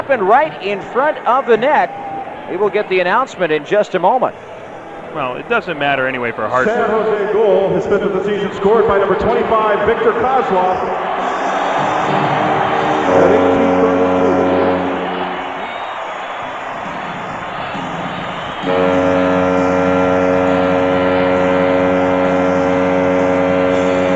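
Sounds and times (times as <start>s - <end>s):
hockey fans cheering: 0.0s - 24.1s
speech: 0.1s - 4.5s, 5.1s - 11.1s
arena foghorn blasts: 11.1s - 16.8s, 17.4s - 24.1s.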